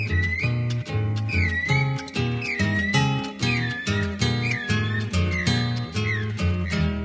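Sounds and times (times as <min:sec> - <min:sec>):
rhythmic instrumental backing: 0:00.0 - 0:07.0
whistled call imitating a guira cuckoo: 0:00.0 - 0:07.0.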